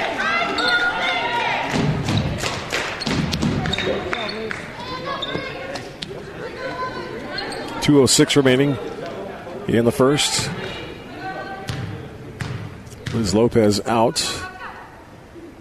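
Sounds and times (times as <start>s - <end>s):
constant crowd noise: 0.0s - 15.5s
basketball bouncing after a missed free throw: 1.7s - 3.8s, 11.7s - 13.3s
speech: 7.9s - 9.0s, 9.6s - 10.8s, 13.1s - 14.4s.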